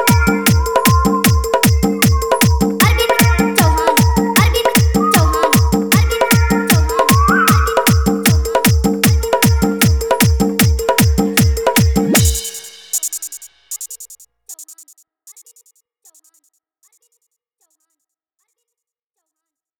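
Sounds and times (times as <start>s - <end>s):
hard dholki drum dance mix: 0.0s - 14.0s.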